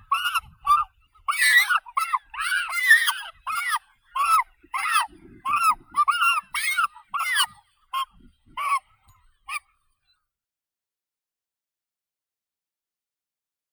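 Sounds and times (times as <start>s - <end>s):
double-crested cormorant Phalacrocorax auritus: 0.0s - 9.7s.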